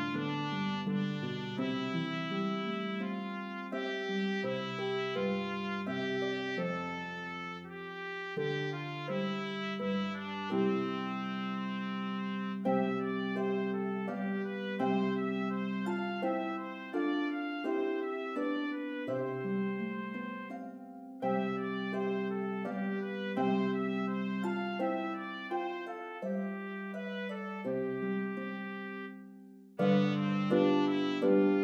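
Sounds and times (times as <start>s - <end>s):
Bb trumpet playing a lullaby: 0.0s - 31.6s
harp playing a lullaby: 0.0s - 31.6s.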